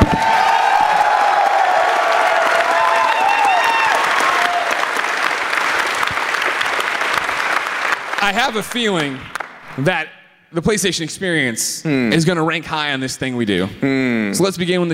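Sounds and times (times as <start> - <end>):
crowd cheers and whoops: 0.0 - 5.0
crowd applause: 0.0 - 9.6
speech: 8.3 - 14.9.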